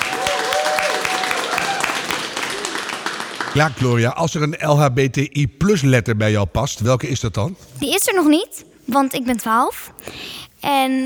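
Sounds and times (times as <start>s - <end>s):
applause: 0.0s - 4.0s
speech: 3.6s - 11.0s.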